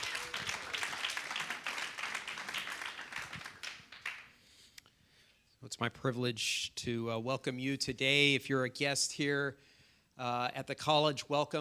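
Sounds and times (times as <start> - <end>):
audience applause welcoming a speaker at a college event: 0.0 - 4.3
speech: 5.8 - 11.5.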